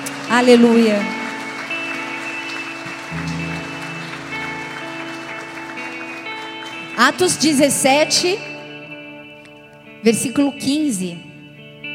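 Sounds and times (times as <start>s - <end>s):
audience applause: 0.0s - 8.6s
speech: 0.3s - 1.2s, 7.0s - 8.5s, 10.0s - 11.3s.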